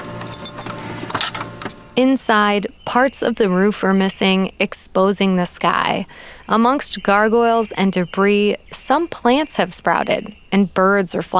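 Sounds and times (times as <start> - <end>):
keys jangling while unlocking a door: 0.0 - 1.7
speech: 2.0 - 11.3.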